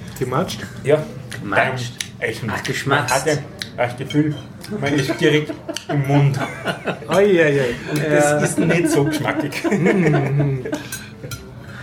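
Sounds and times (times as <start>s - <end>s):
speech: 0.2s - 11.4s
knives and forks clinking against plates: 4.0s - 6.0s, 10.8s - 11.6s
laughter: 4.6s - 11.6s.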